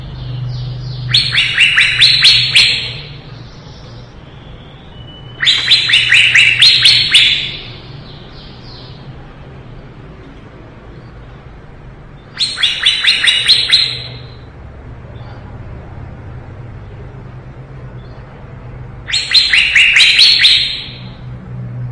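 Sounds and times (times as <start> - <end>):
leafbird song: 0.0 - 9.9, 12.1 - 15.6, 19.0 - 21.3.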